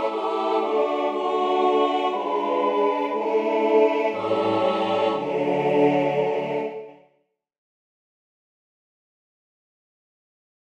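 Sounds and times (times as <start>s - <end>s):
ensemble singing Gypsy songs tutti: 0.0s - 7.1s.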